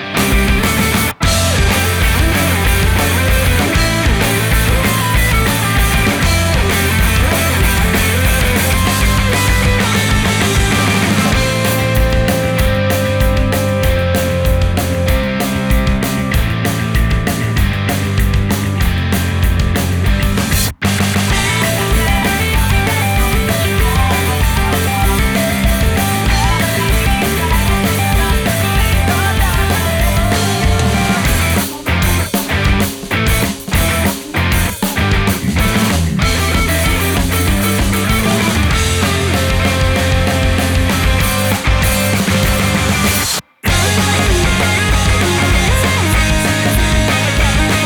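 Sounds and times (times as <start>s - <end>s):
instrumental music: 0.1s - 47.8s.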